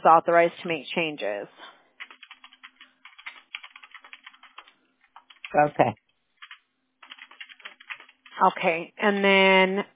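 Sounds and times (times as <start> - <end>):
speech: 0.0 - 1.8, 5.5 - 6.0, 8.4 - 9.9
rapid typing on a computer keyboard during a customer phone call: 2.0 - 8.4.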